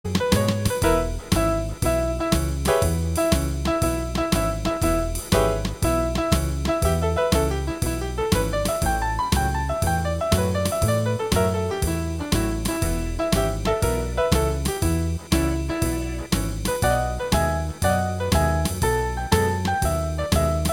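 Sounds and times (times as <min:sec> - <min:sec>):
blues music: 0:00.0 - 0:20.7.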